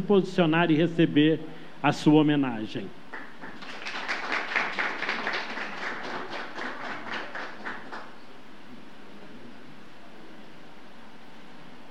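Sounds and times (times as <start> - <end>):
speech: 0.0 - 3.0
warm round of applause from a group: 3.1 - 8.3.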